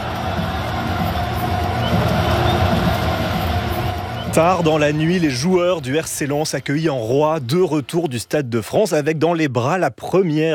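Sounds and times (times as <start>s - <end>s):
stadium crowd at Stade Bollaert celebrating RC Lens Coupe de France win: 0.0s - 7.8s
speech: 4.4s - 10.5s.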